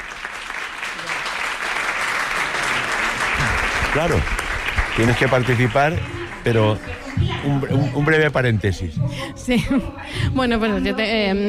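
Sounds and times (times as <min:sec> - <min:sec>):
group applause: 0:00.0 - 0:08.4
speech: 0:03.9 - 0:04.4, 0:05.0 - 0:11.4.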